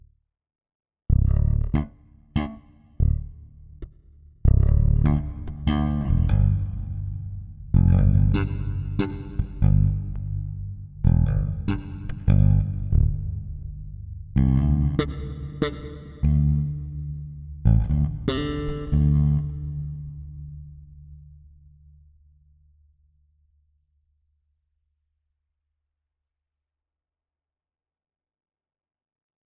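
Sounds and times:
bass in a huge hall: 1.2s - 22.1s.

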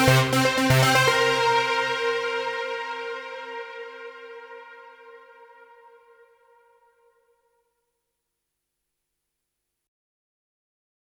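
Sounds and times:
JunoDS88 JP8000 synth brass filter sequence: 0.0s - 7.2s.

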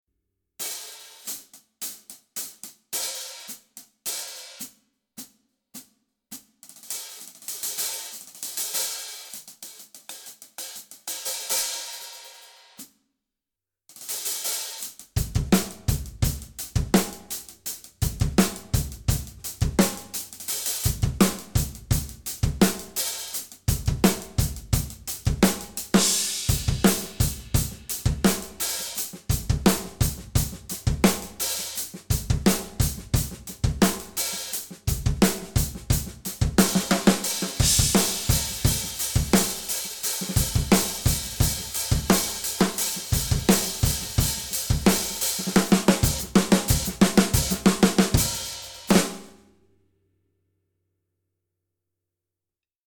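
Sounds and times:
extra dry medium thin hi-hat: 6.6s - 12.8s, 14.0s - 49.0s.

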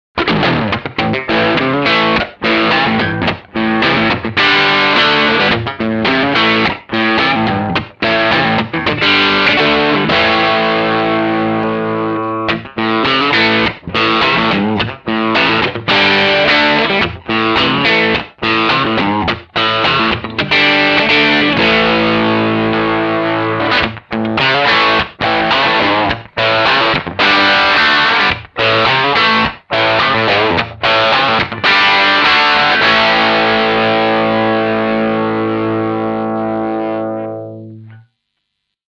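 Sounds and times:
humbucker electric guitar crunch: 0.2s - 38.2s.

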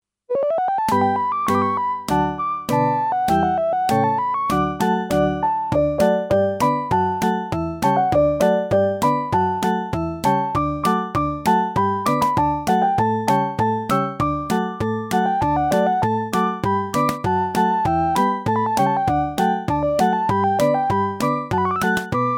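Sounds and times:
Casio SK-10 keyboard: 0.3s - 22.3s.

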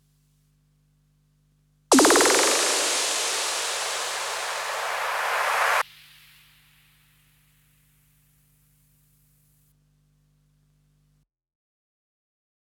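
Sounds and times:
sequenced synthesizer noise effects: 1.9s - 7.4s.

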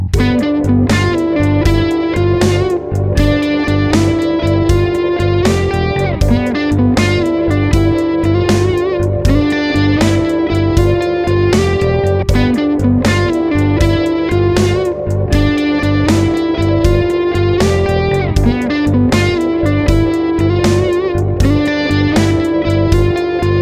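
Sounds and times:
fat guitar sound lick: 0.2s - 23.6s.

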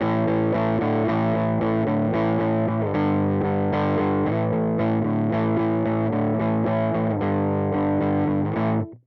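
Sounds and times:
guitar through two stacked overdrive circuits: 0.0s - 9.0s.

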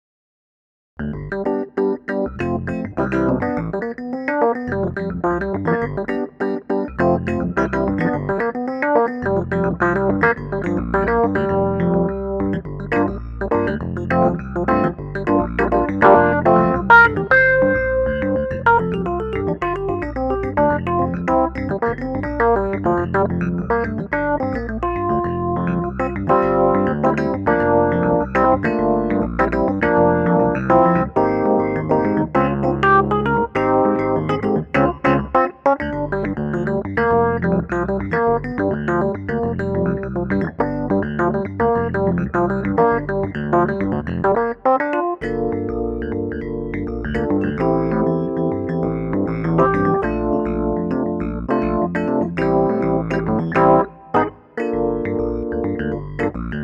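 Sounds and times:
funk music: 1.0s - 56.6s.

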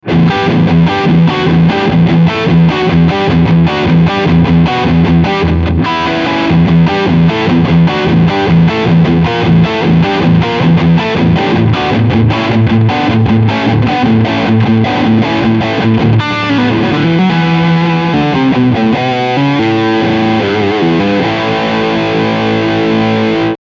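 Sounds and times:
overdriven guitar riff: 0.0s - 23.6s.

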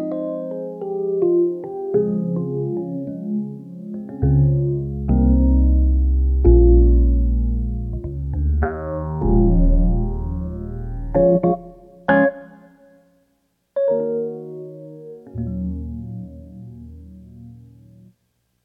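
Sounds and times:
electric pianos: 0.0s - 12.9s, 13.8s - 18.2s.

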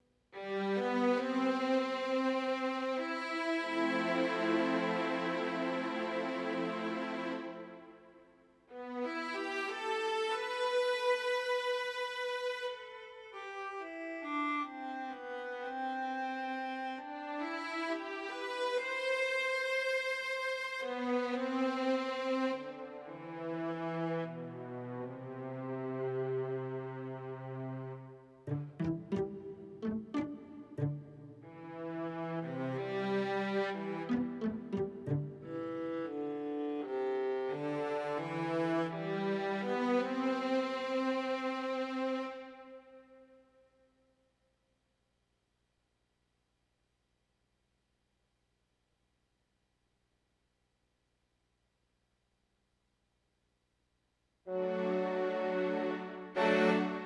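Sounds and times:
strings: 0.4s - 8.1s, 8.7s - 43.0s, 54.5s - 57.0s.

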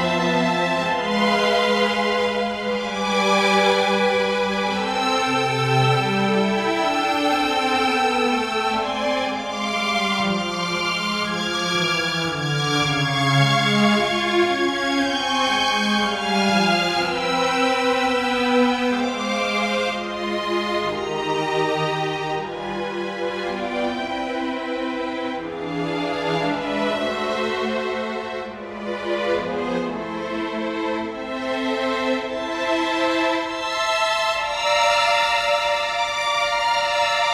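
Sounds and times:
string ensemble: 0.0s - 37.3s.

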